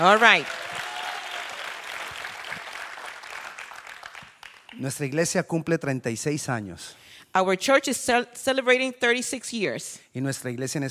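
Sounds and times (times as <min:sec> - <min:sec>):
speech: 0:00.0 - 0:00.6, 0:04.8 - 0:10.8
audience applauding: 0:00.0 - 0:05.1.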